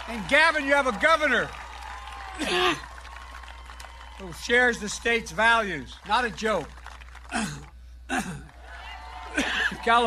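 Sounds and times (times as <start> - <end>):
speech: 0.1 - 1.6, 2.4 - 2.9, 4.2 - 8.4, 9.4 - 10.0
harsh coughs: 7.3 - 8.5.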